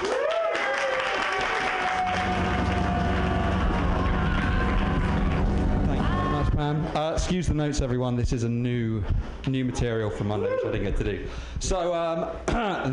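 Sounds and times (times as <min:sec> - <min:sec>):
audience clapping: 0:00.0 - 0:06.4
speech: 0:07.2 - 0:12.9.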